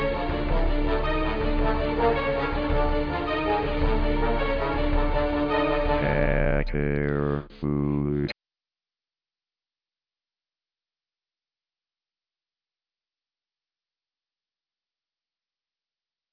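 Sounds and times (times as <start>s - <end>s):
funk music: 0.0s - 8.3s.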